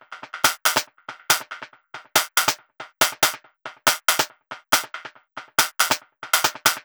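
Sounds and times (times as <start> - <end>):
snare drum dance beat loop: 0.0 - 6.8.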